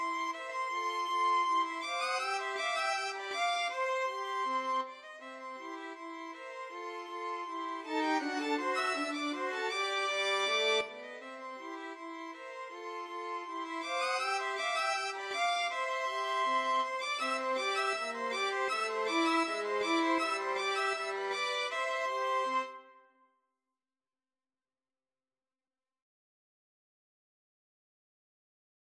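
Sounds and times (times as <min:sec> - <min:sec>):
violin trio: 0:00.0 - 0:22.8.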